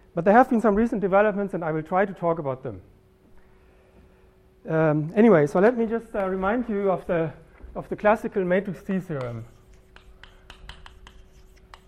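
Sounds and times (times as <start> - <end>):
soft hum: 0.0 - 11.8
speech: 0.2 - 2.9, 4.6 - 9.5
chalk writing on a blackboard: 9.0 - 11.8.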